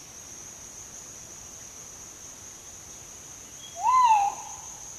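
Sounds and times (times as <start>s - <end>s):
Crinkle-collared manucode giving slurred whistled calls: 3.6s - 4.7s.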